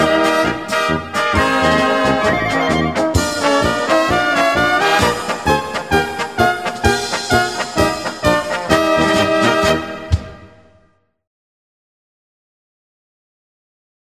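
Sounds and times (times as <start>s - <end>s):
instrumental music: 0.0s - 11.0s.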